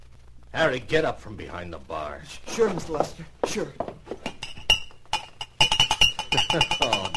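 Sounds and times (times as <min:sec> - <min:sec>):
speech: 0:00.5 - 0:04.0, 0:06.5 - 0:07.1
whiskey glasses clinking on a bar: 0:04.1 - 0:07.1.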